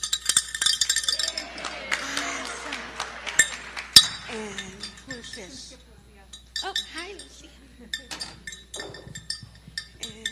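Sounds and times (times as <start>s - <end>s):
toddler ringing a bell: 0.0s - 10.3s
laughter: 1.0s - 6.1s, 7.3s - 8.5s
speech: 5.4s - 6.0s, 6.6s - 9.2s.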